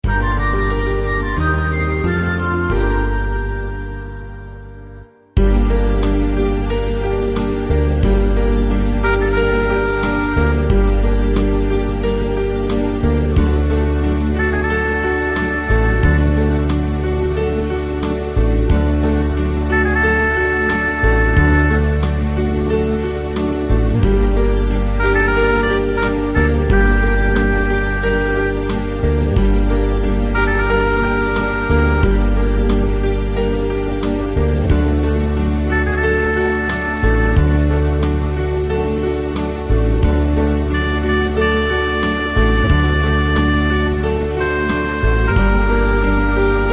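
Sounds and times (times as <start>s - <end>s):
instrumental music: 0.0s - 46.7s.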